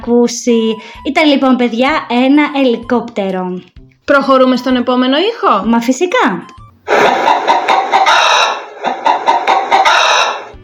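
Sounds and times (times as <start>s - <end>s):
speech: 0.0s - 7.7s
hen clucking: 6.9s - 10.6s.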